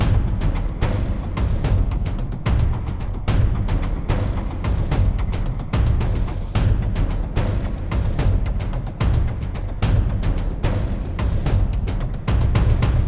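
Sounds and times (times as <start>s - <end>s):
garden action percussion loop: 0.0s - 13.0s.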